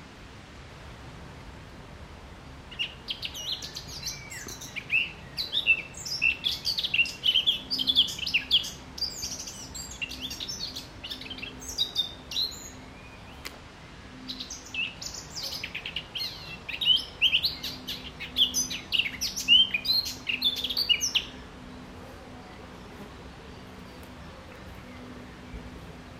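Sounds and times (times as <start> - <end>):
Eurasian blackcap warbling song: 2.7 - 13.6, 14.2 - 21.8.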